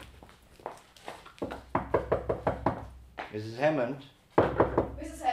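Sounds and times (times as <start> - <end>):
knocking on a door: 1.5 - 2.9, 4.4 - 5.1
speech: 3.3 - 4.1.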